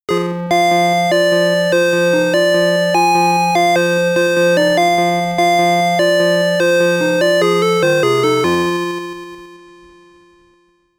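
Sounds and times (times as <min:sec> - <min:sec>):
bonus game background music: 0:00.1 - 0:09.4.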